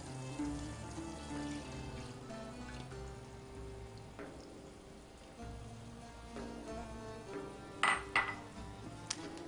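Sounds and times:
blood poured into a pot and stirred: 0.0 - 7.6
utensil clinking against a pot: 7.3 - 8.7.

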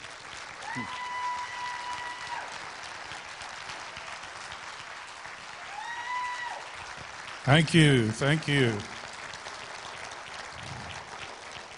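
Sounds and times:
audience applause welcoming a speaker: 0.0 - 11.7
audience cheers: 0.6 - 2.8, 5.5 - 6.8
speech: 0.8 - 1.0, 7.5 - 9.0.

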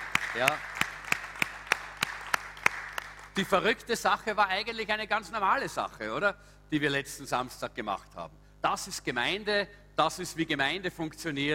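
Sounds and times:
audience clapping in steady rhythm: 0.0 - 3.6
low hum: 0.0 - 11.5
speech: 0.4 - 0.7, 3.4 - 11.5.

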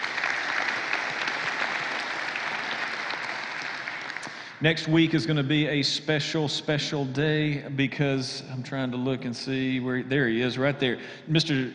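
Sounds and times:
church congregation applause: 0.0 - 5.2
speech: 4.6 - 11.7.

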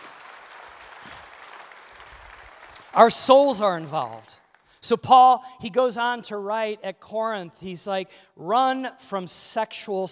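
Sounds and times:
crowd applauding: 0.0 - 4.4
speech: 2.9 - 10.1.

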